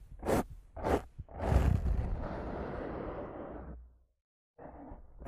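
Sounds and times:
rough scratching and brushing against a microphone: 0:00.2 - 0:03.7
rumbling rub: 0:00.8 - 0:03.8.

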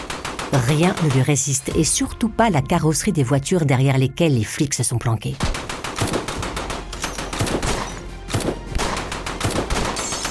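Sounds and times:
automatic rifle fire in bursts: 0:00.0 - 0:01.2, 0:05.5 - 0:10.2
speech: 0:00.5 - 0:05.6.

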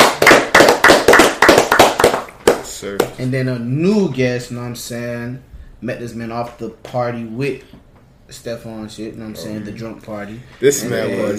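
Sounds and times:
clapping for a guest: 0:00.0 - 0:03.2
speech: 0:02.8 - 0:11.3.

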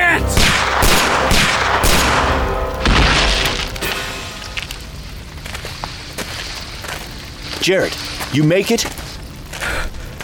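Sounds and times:
shotgun fire blasting into trees: 0:00.3 - 0:03.6
speech: 0:07.6 - 0:09.0.

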